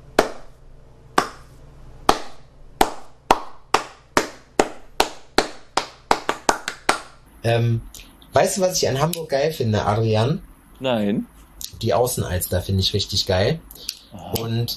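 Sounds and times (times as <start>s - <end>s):
hand clapping: 0.2s - 0.5s, 1.2s - 1.5s, 2.1s - 7.2s
speech: 7.4s - 14.7s.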